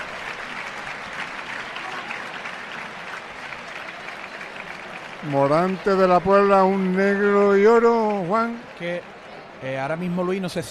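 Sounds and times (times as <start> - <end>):
crowd clapping as bullfighters enter the ring: 0.0 - 10.7
speech: 5.2 - 10.7.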